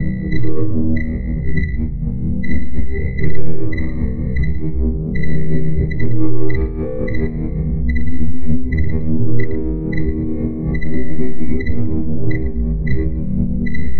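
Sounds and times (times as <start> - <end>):
ambience: 0.0 - 13.9.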